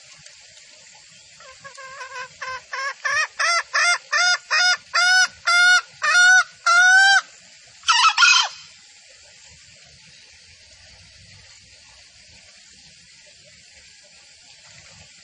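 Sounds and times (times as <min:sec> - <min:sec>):
female junglefowl call used as a lure for trapping in the forest: 0:01.4 - 0:08.7.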